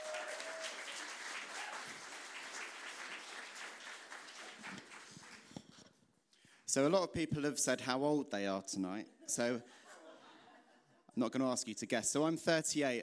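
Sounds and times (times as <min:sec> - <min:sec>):
audience applause at a comedy show: 0:00.0 - 0:05.6
speech: 0:06.8 - 0:09.8, 0:11.2 - 0:13.0
laughter: 0:09.3 - 0:11.1.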